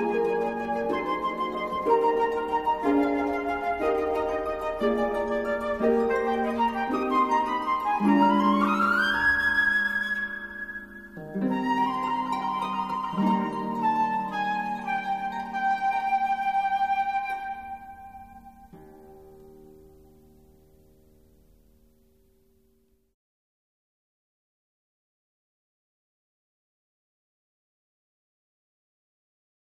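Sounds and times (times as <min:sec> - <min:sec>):
flute: 0:00.0 - 0:18.7
harp: 0:00.0 - 0:22.3.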